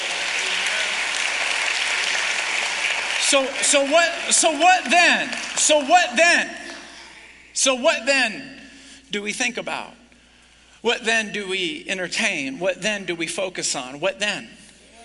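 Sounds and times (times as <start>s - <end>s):
audience applause: 0.0s - 6.4s
speech: 3.3s - 6.7s, 7.6s - 10.0s, 10.8s - 14.6s.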